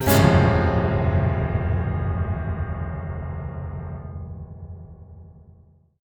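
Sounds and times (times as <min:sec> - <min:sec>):
piano bad note stinger: 0:00.0 - 0:05.8.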